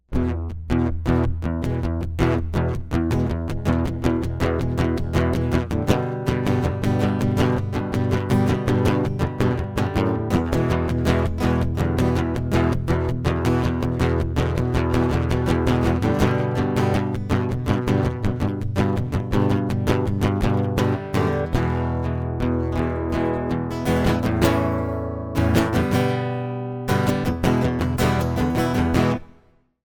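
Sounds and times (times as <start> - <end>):
acoustic music: 0.1 - 29.5.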